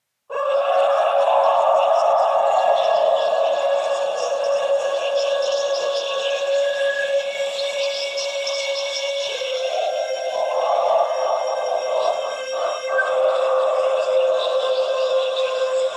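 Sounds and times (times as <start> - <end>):
choir singing: 0.3 - 6.8, 7.9 - 15.8.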